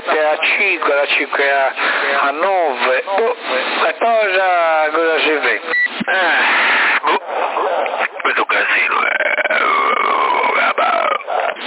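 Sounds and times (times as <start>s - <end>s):
speech: 0.1s - 6.4s
burp-like croaking sound over CB radio: 5.7s - 11.6s.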